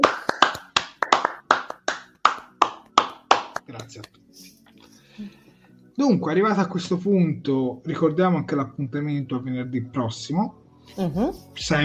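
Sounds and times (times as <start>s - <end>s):
single person clapping: 0.0s - 4.2s
speech: 3.7s - 4.5s, 5.2s - 5.4s, 6.0s - 11.8s.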